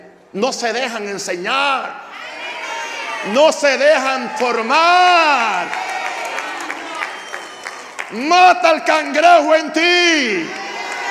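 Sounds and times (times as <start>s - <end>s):
speech: 0.3s - 2.4s, 3.2s - 5.8s, 8.1s - 10.6s
audience applause: 4.4s - 8.3s.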